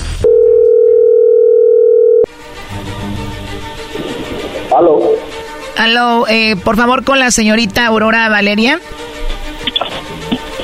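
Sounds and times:
telephone line tone: 0.2s - 2.3s
speech: 5.8s - 9.0s.

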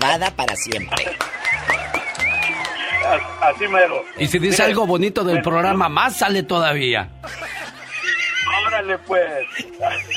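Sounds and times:
speech: 0.0s - 1.8s, 3.1s - 7.4s, 8.8s - 10.1s
applause: 0.0s - 3.0s
laughter: 0.9s - 3.4s, 7.2s - 10.1s.

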